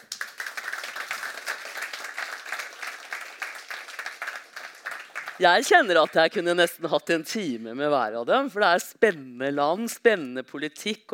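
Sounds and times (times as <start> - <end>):
audience applause: 0.0 - 6.2
speech: 5.4 - 11.1.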